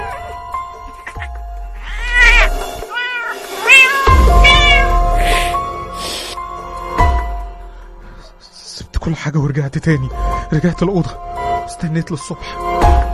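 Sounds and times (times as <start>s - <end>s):
cat meowing: 1.0s - 5.6s
speech: 9.1s - 11.3s, 11.8s - 12.9s.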